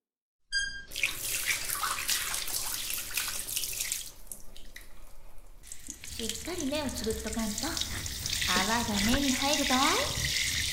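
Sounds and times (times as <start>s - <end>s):
brief squeaky tone: 0.5s - 1.0s
water rinsing shampoo from hair: 0.9s - 10.7s
speech: 6.2s - 10.3s.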